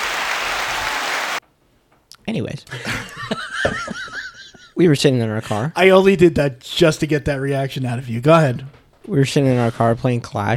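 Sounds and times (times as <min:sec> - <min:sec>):
applause: 0:00.0 - 0:01.4
speech: 0:02.3 - 0:04.2, 0:04.8 - 0:10.5
laughter: 0:02.7 - 0:04.8.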